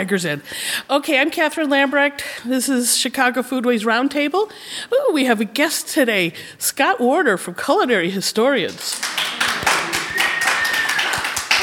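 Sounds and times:
speech: 0:00.0 - 0:09.7
small group applauding: 0:08.7 - 0:11.6.

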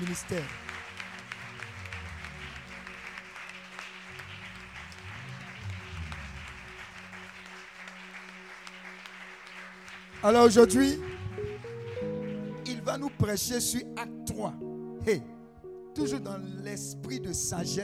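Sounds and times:
speech: 0:00.0 - 0:00.7, 0:10.2 - 0:11.2, 0:13.0 - 0:15.3, 0:16.0 - 0:17.8
audience applauding and cheering: 0:00.0 - 0:13.8
low droning tone: 0:01.4 - 0:03.1, 0:04.1 - 0:07.4.

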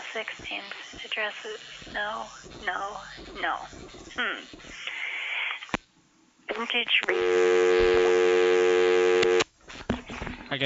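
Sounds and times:
speech: 0:00.2 - 0:04.9, 0:06.6 - 0:08.5
telephone tone after a disconnected call: 0:06.5 - 0:09.5.

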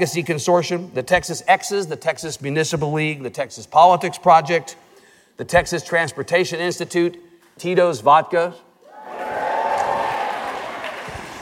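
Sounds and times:
speech: 0:00.0 - 0:04.8, 0:05.4 - 0:08.6
audience applauding: 0:08.9 - 0:11.4.

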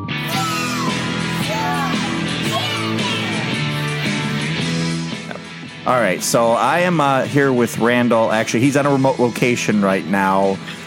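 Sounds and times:
children screaming: 0:00.2 - 0:04.5
speech: 0:05.9 - 0:10.8.

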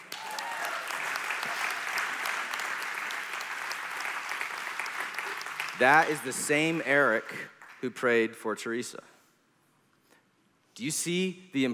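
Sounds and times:
audience cheering: 0:00.0 - 0:07.1
speech: 0:05.8 - 0:09.1, 0:10.8 - 0:11.7.

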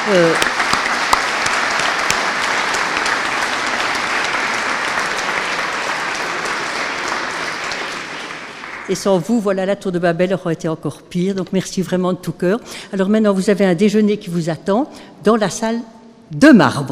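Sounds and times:
speech: 0:00.0 - 0:00.6, 0:08.9 - 0:16.9
audience applauding: 0:00.0 - 0:09.2.

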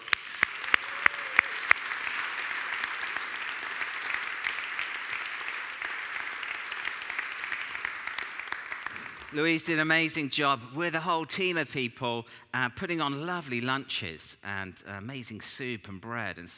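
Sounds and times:
crowd applause: 0:00.0 - 0:09.6
speech: 0:09.3 - 0:16.5.

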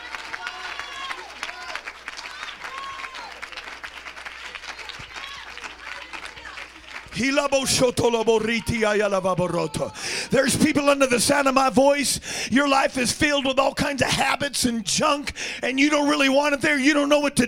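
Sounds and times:
audience clapping hands: 0:00.0 - 0:09.7
speech: 0:07.2 - 0:17.4.

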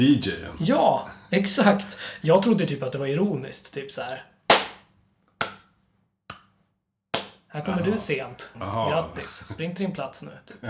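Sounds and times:
speech: 0:00.0 - 0:04.3, 0:07.6 - 0:10.6
sharp loud hand claps: 0:04.5 - 0:05.7, 0:06.3 - 0:06.6, 0:07.2 - 0:07.5
laughter: 0:07.6 - 0:09.8, 0:10.5 - 0:10.6.

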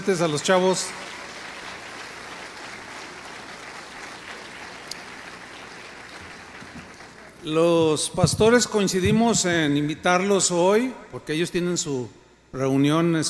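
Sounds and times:
speech: 0:00.0 - 0:01.2, 0:07.4 - 0:13.2
audience applause: 0:00.0 - 0:08.0.

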